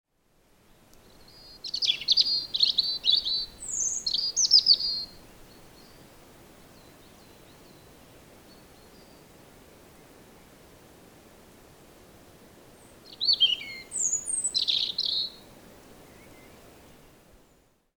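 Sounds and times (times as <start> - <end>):
background hiss: 0.1 - 17.9
European robin singing: 1.0 - 9.3, 12.8 - 15.5, 16.1 - 17.1.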